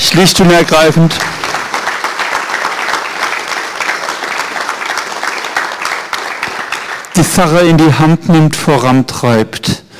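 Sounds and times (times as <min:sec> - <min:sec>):
speech: 0:00.2 - 0:01.4, 0:07.2 - 0:09.8
audience applause at a church community gathering in a hall: 0:00.6 - 0:07.6.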